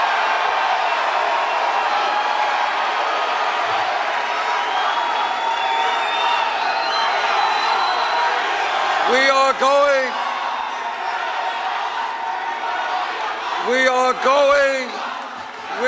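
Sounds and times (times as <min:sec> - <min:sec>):
raucous crowd cheering: 0:00.0 - 0:15.8.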